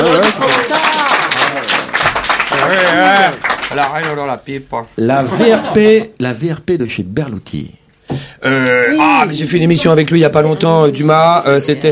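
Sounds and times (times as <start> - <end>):
audience clapping: 0.0 - 4.4
speech: 2.7 - 11.9.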